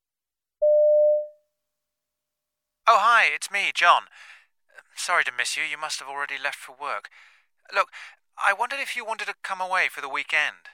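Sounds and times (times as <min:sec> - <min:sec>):
telephone answering machine beep: 0:00.6 - 0:01.3
speech: 0:02.9 - 0:04.3, 0:05.0 - 0:10.7.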